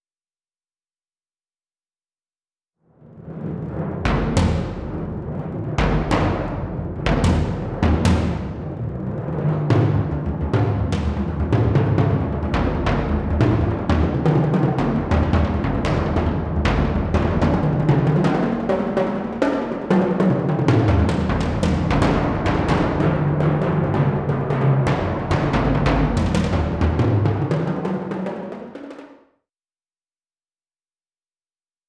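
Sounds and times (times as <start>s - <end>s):
percussion: 3.3s - 29.2s.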